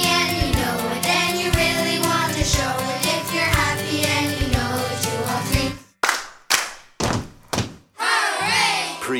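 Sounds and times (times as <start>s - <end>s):
group of children singing: 0.0s - 5.8s, 8.0s - 9.0s.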